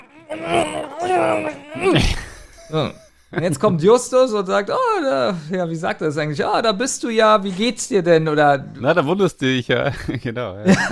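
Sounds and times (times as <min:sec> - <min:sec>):
gagged tied-up man groaning in a radio play: 0:00.0 - 0:03.1
speech: 0:00.3 - 0:10.8.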